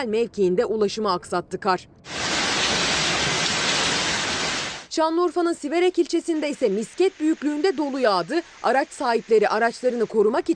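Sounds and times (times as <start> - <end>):
speech: 0.0 - 2.2, 5.0 - 10.5
heavy rain pouring: 2.1 - 5.0, 6.2 - 10.1.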